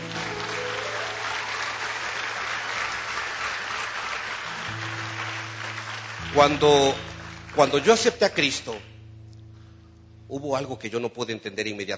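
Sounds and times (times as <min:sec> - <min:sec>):
audience applause: 0:00.0 - 0:08.8
speech: 0:06.3 - 0:08.9, 0:10.3 - 0:11.9.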